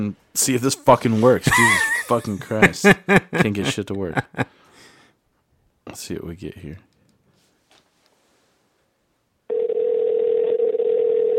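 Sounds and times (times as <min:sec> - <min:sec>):
speech: 0:00.0 - 0:04.6, 0:05.9 - 0:06.9
laughter: 0:00.7 - 0:04.5
telephone dial tone: 0:09.5 - 0:11.3.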